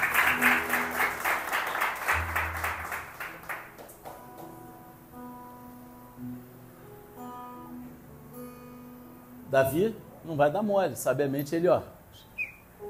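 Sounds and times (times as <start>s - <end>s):
applause: 0.0s - 4.6s
speech: 9.5s - 12.3s.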